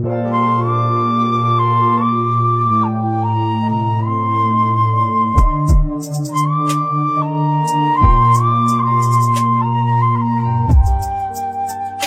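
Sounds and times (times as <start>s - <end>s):
Chinese flute: 0.1s - 12.0s.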